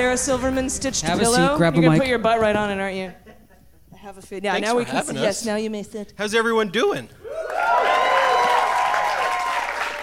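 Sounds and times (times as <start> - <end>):
speech: 0.0 - 3.3, 4.0 - 7.4
scattered cheers and whoops: 7.2 - 10.0
audience applause: 7.3 - 10.0.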